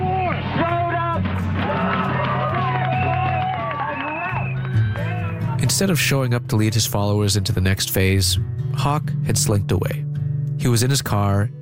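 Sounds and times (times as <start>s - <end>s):
crowd of counter-protesters rejoicing: 0.0s - 5.6s
speech: 5.7s - 11.6s.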